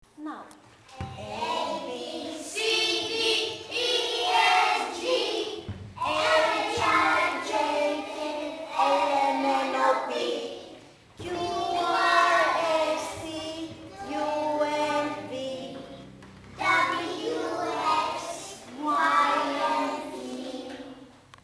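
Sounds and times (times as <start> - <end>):
children's song: 0.9 - 21.4.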